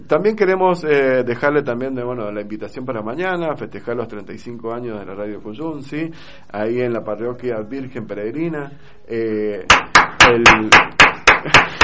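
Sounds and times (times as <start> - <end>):
speech: 0.0 - 11.8
applause from the street: 9.7 - 11.8.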